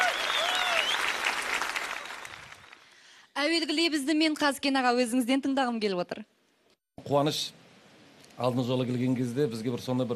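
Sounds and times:
faint high whistles: 0.0 - 2.8
audience applauding: 0.0 - 3.0
speech: 3.4 - 6.4, 7.0 - 7.6, 8.4 - 10.1.

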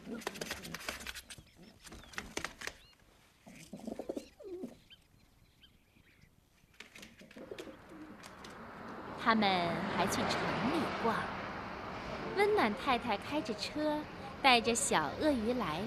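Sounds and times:
flock of pigeons cooing: 0.0 - 2.3, 3.4 - 5.0, 7.0 - 8.6
speech: 9.2 - 11.4, 12.4 - 15.8.

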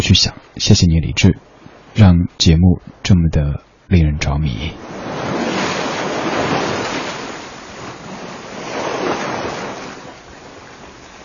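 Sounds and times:
speech: 0.1 - 5.0
ocean waves: 1.2 - 2.2, 4.7 - 11.2.

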